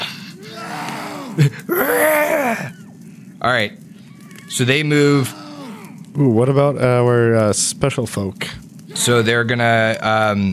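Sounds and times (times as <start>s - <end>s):
zombie-like groaning roar: 0.4s - 2.7s, 5.1s - 6.0s
speech: 1.4s - 2.8s, 3.4s - 3.8s, 4.5s - 5.4s, 6.2s - 10.5s.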